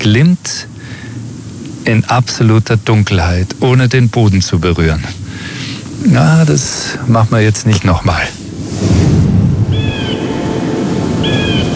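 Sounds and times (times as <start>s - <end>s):
speech: 0.0s - 1.0s, 1.8s - 5.2s, 6.0s - 9.1s
steady low rushing noise: 0.0s - 11.7s
falcon calling: 9.7s - 10.4s, 11.2s - 11.7s.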